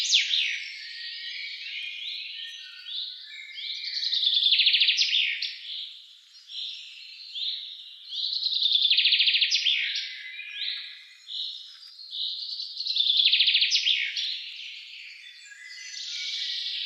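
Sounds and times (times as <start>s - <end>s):
common chaffinch song, Fringilla coelebs: 0.0s - 16.8s.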